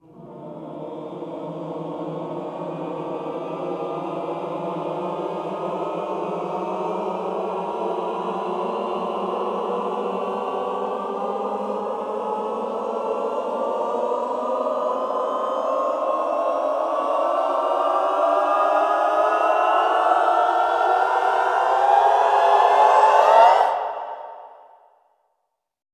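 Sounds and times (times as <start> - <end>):
classical choir cluster glissando upward: 0.0 - 24.9.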